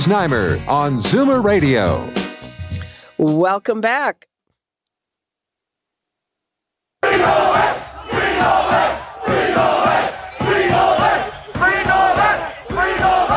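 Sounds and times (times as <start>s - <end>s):
speech: 0.0s - 2.2s, 3.2s - 4.3s, 7.1s - 10.1s
crowd of Novak Djokovic's supporters chanting at a protest: 7.0s - 13.3s.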